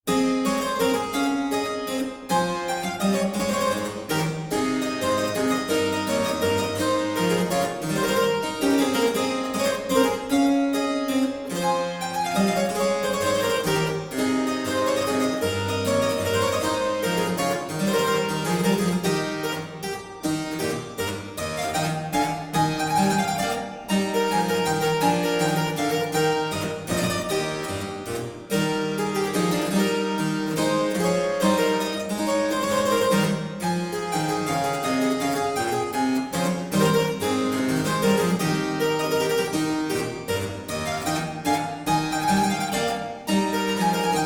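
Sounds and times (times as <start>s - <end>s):
minuet: 0.0s - 44.2s.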